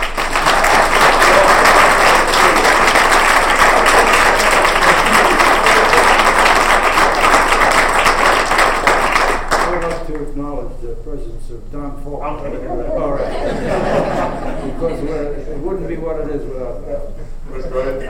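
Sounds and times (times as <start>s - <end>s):
audience applause at a writers' gathering honoring a host: 0.0s - 10.0s
laughter: 4.2s - 6.4s, 12.6s - 16.0s, 17.5s - 18.0s
speech: 11.0s - 12.9s.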